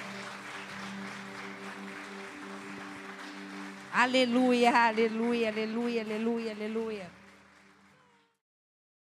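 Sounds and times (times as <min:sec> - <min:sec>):
audience clapping hands: 0:00.0 - 0:08.4
speech: 0:04.0 - 0:07.2.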